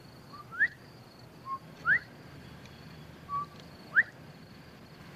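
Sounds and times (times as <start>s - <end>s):
mountain bluebird giving whistled notes: 0.3s - 0.8s, 1.4s - 2.1s, 3.3s - 4.2s.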